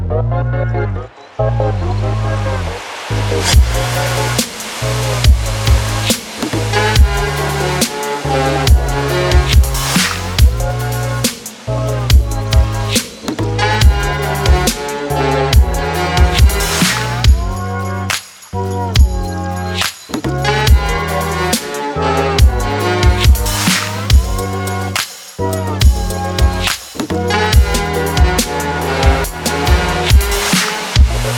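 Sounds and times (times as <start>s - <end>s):
lo-fi hip-hop beats: 0.2s - 31.3s.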